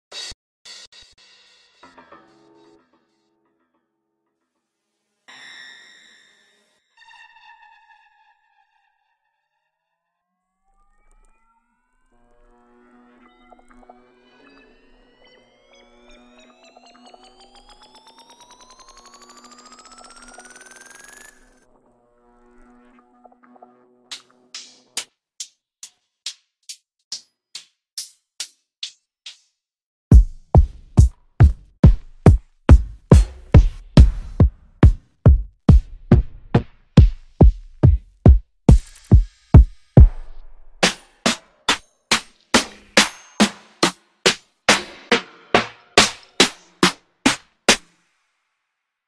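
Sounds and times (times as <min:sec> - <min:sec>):
decayed drum kit: 0:00.1 - 0:02.3, 0:30.1 - 0:47.9.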